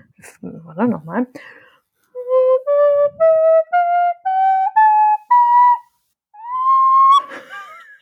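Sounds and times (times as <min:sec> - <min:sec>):
speech: 0:00.7 - 0:01.6, 0:02.4 - 0:04.0
flute playing a rising scale: 0:02.1 - 0:07.4.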